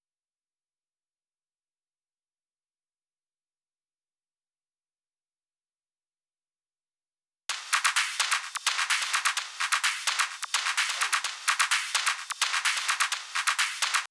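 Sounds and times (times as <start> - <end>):
drum loop: 7.5 - 14.0.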